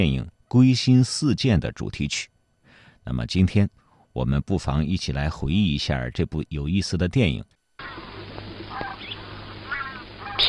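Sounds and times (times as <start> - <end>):
speech: 0.0 - 2.3, 3.0 - 8.1
steady hiss: 7.8 - 10.4
wild geese honking as they fly south in an old film scene: 7.8 - 10.4.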